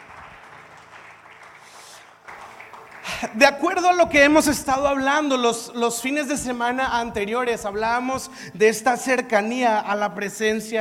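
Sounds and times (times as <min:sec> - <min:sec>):
audience applauding: 0:00.0 - 0:04.5
speech: 0:03.2 - 0:10.7.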